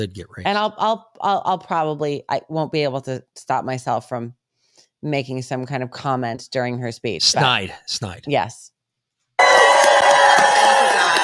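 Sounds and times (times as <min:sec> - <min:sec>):
speech: 0:00.0 - 0:08.7
crowd applauding and cheering: 0:09.4 - 0:11.2.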